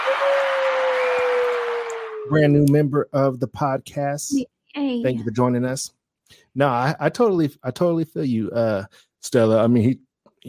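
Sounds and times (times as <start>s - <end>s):
round of applause: 0.0s - 2.9s
speech: 2.3s - 10.4s.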